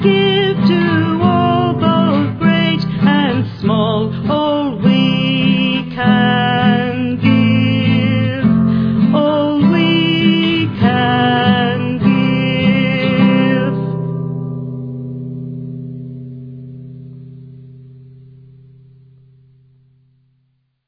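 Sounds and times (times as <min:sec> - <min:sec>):
person singing a world song in English: 0:00.0 - 0:14.1
guitar accompaniment: 0:00.0 - 0:20.4.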